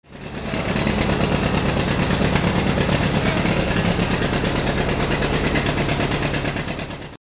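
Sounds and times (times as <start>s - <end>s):
cars: 0.0s - 7.2s.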